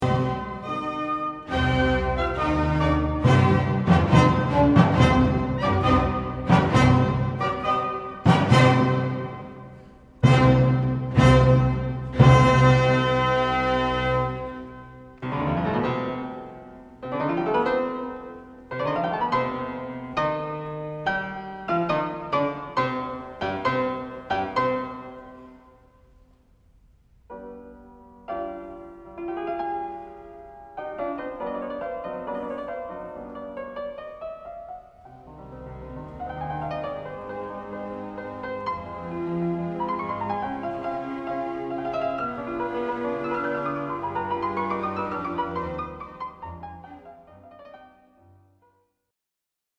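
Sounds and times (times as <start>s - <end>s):
piano concerto: 0.0s - 48.8s.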